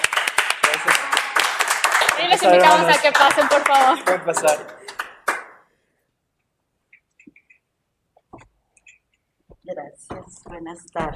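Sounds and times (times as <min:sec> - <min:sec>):
audience applause: 0:00.0 - 0:05.6
speech: 0:02.2 - 0:04.8, 0:10.6 - 0:11.1
laughter: 0:02.2 - 0:05.0.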